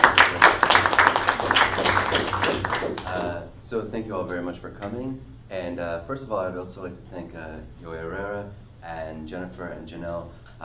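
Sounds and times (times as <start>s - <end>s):
audience applause welcoming a guest lecturer in Wisconsin: 0.0s - 3.4s
speech: 3.7s - 10.6s.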